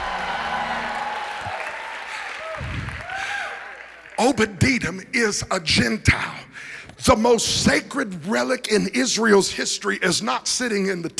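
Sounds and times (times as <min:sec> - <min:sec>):
audience shouting: 0:00.0 - 0:03.9
audience clapping: 0:00.0 - 0:04.6
speech: 0:04.2 - 0:11.1.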